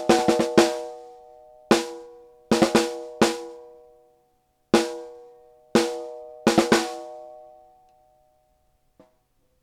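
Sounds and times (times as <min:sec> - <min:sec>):
Fredenstein F200 snare drum with compressor: 0:00.0 - 0:01.1, 0:01.7 - 0:03.6, 0:04.8 - 0:05.2, 0:05.8 - 0:07.2.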